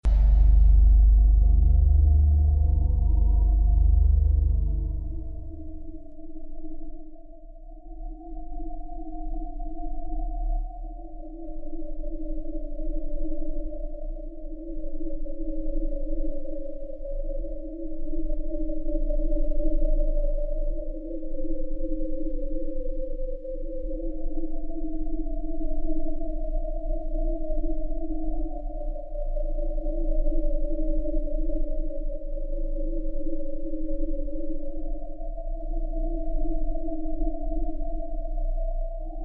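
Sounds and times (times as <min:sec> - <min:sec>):
music: 0:00.0 - 0:39.2.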